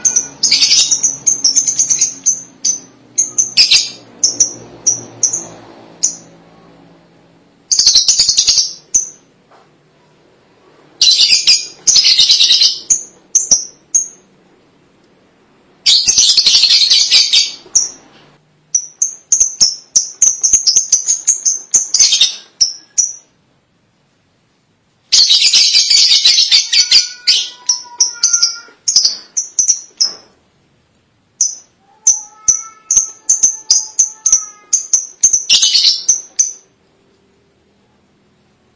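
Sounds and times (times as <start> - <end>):
lovebird chirping: 0.0 - 6.4, 7.7 - 9.3, 11.0 - 14.3, 15.8 - 23.4, 25.1 - 30.3, 31.4 - 36.8.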